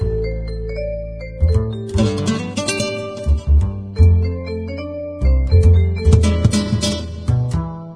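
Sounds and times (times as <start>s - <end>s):
Mexican music: 0.0s - 7.9s.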